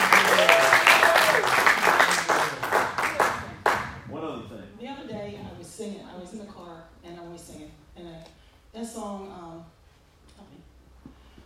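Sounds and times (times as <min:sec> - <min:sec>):
scattered vocal cheers: 0:00.0 - 0:04.2
audience hand clapping: 0:00.0 - 0:04.4.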